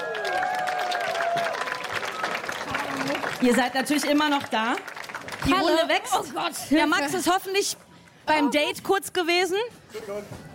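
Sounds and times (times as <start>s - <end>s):
audience applause: 0.0s - 6.2s
speech: 3.4s - 10.5s.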